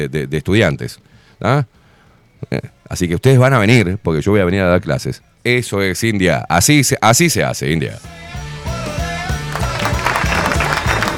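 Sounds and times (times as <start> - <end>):
speech: 0.0 - 1.8, 2.4 - 8.5
applause: 9.4 - 11.1.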